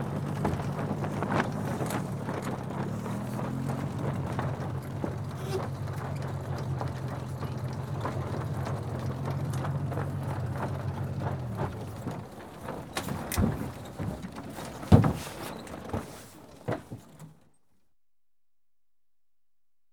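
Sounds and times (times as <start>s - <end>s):
sailing dinghy being towed: 0.0s - 17.4s.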